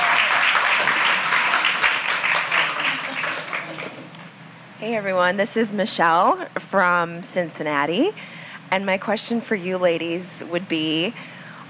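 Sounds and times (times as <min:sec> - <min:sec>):
audience applause: 0:00.0 - 0:04.1
speech: 0:04.8 - 0:11.4.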